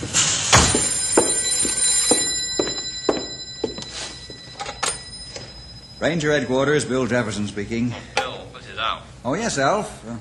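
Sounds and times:
telephone buzzing: 0.6 - 6.7
speech: 6.0 - 8.2, 8.8 - 10.1.

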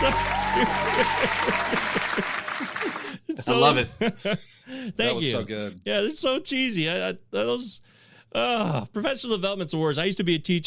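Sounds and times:
applause sound effect from a clap button: 0.0 - 3.3
laughter: 0.0 - 5.3
speech: 0.1 - 2.2, 3.5 - 10.6.

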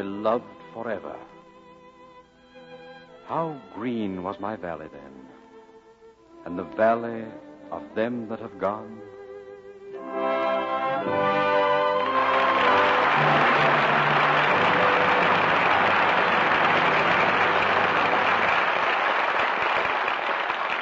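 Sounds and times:
speech: 0.0 - 1.3, 3.3 - 5.4, 6.4 - 9.1
closing musical chord: 10.0 - 18.7
audience applause: 11.0 - 20.8.

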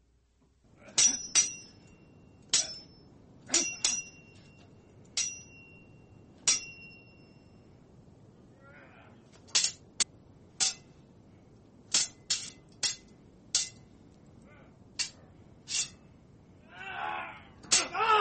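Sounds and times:
swords clinking sound effect: 0.9 - 7.5, 9.5 - 9.9, 10.6 - 11.0, 11.9 - 13.9, 15.0 - 16.0, 17.7 - 18.0.

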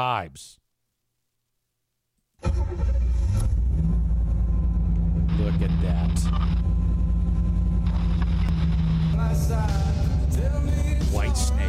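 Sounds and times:
speech: 0.0 - 0.6, 2.4 - 3.1, 5.5 - 6.8, 9.2 - 11.6
muscle car engine revving: 2.5 - 11.6.

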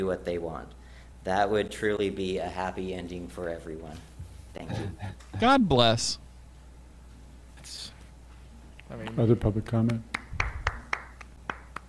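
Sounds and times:
speech: 0.0 - 6.2, 8.9 - 10.2
one person clapping: 9.6 - 11.8.

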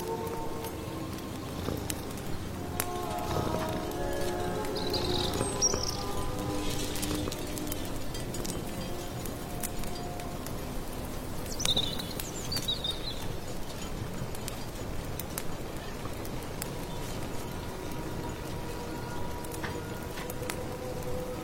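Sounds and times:
firewood crackling: 0.0 - 21.4
rustling rain in a late autumn forest: 0.0 - 21.4
soft sustained low tones: 0.0 - 21.4
bird chirps: 4.1 - 7.7, 11.4 - 13.4.

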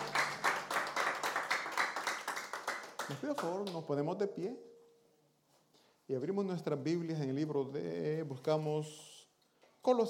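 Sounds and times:
audience applause: 0.0 - 3.7
speech: 3.1 - 4.7, 6.1 - 9.1, 9.8 - 10.0.

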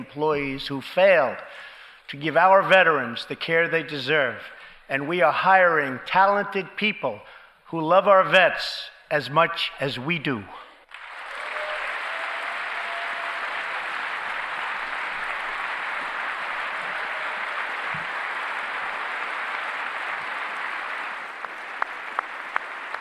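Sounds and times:
speech: 0.0 - 10.6
audience applause: 10.9 - 22.9.

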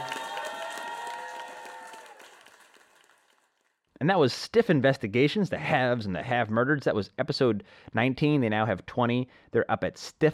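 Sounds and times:
faint applause from an audience: 0.0 - 3.6
speech: 4.0 - 10.3.

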